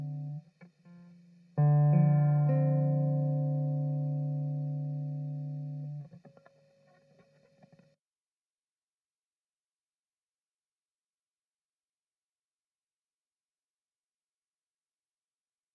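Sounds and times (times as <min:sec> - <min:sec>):
bluesy groove in D minor in five four: 0:00.0 - 0:06.1.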